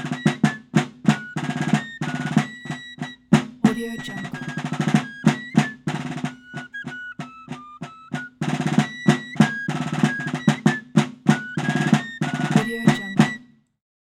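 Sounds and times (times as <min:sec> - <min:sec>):
fife and drum transition music: 0:00.0 - 0:13.5.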